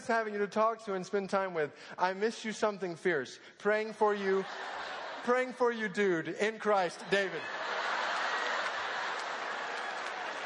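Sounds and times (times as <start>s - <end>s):
speech: 0.1s - 7.9s
laughter: 4.1s - 6.0s, 6.6s - 10.4s
audience clapping: 7.6s - 10.4s.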